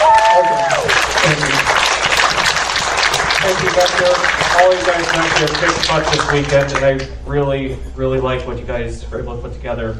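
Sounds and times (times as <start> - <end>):
audience applauding a convention's board of directors and staff: 0.0 - 7.1
speech: 4.8 - 9.9.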